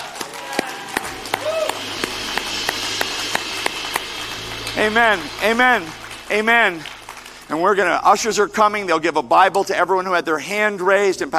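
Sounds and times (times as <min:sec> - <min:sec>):
audience clapping: 0:00.0 - 0:08.2
speech: 0:04.8 - 0:06.9, 0:07.5 - 0:11.3.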